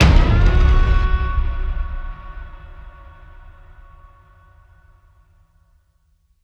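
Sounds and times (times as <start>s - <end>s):
impact: 0.0s - 5.2s.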